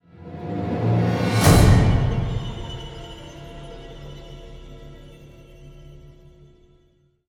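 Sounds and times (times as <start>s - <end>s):
musical stinger: 0.2s - 6.0s.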